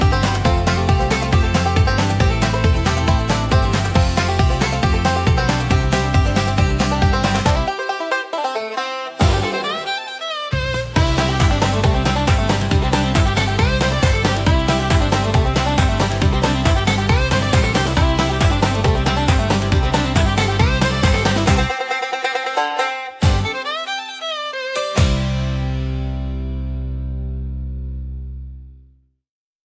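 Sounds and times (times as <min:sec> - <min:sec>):
country acoustic banjo: 0:00.0 - 0:27.7.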